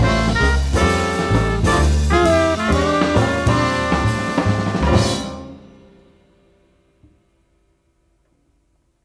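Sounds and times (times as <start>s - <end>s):
horn: 0.0s - 6.3s.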